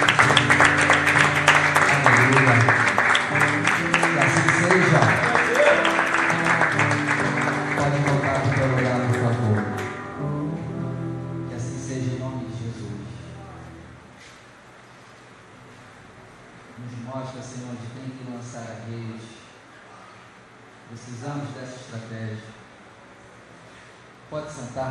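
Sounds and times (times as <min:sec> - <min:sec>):
audience applauding: 0:00.0 - 0:10.1.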